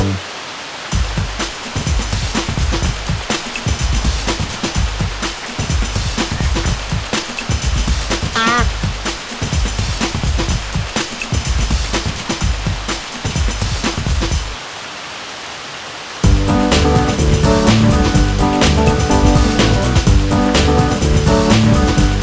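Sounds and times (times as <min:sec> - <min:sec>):
bike music theme: 0:00.0 - 0:00.2, 0:16.2 - 0:22.2
heavy rain: 0:00.0 - 0:22.2.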